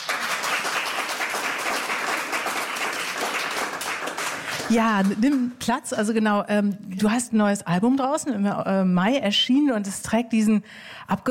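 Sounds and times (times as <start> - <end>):
audience applause: 0.0 - 5.5
speech: 4.7 - 11.2.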